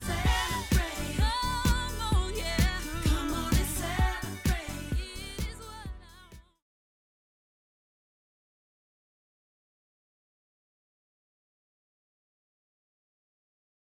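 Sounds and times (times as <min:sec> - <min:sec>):
music: 0:00.0 - 0:06.6.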